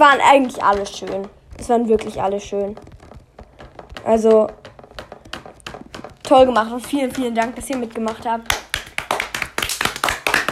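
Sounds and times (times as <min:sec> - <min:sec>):
speech: 0:00.0 - 0:02.9, 0:04.0 - 0:04.7, 0:06.3 - 0:08.6
people clapping: 0:07.1 - 0:10.4.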